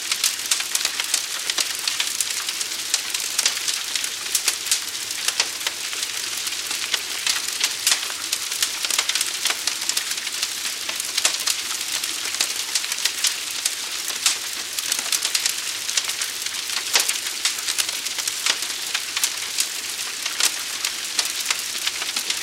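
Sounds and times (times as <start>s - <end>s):
forest brush fire crackling: 0.0s - 22.4s.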